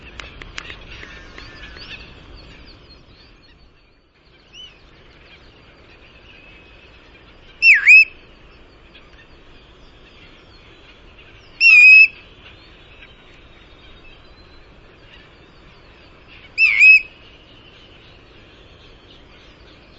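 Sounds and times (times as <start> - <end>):
bristle-thighed curlew Numenius tahitiensis giving wavering whistled phrases: 7.3 - 8.3, 11.5 - 15.3, 16.4 - 18.3.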